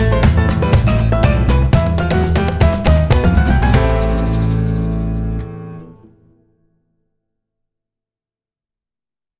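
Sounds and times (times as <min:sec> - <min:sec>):
vibey optimistic Latin piano samba: 0:00.0 - 0:06.4.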